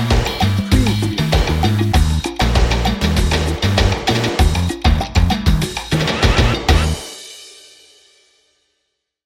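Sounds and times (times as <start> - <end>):
tropical party drum and bass music: 0.0 - 7.3.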